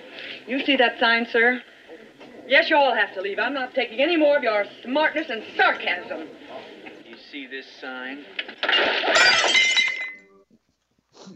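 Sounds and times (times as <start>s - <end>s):
speech: 0.5s - 1.7s, 2.5s - 6.4s, 7.3s - 9.7s
dishes swept off a table, crockery and glass breaking: 8.4s - 10.3s.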